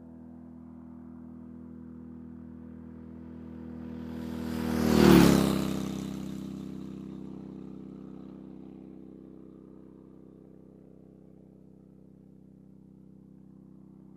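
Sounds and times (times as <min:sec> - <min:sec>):
motorcycle passing by quickly: 0:00.1 - 0:10.4.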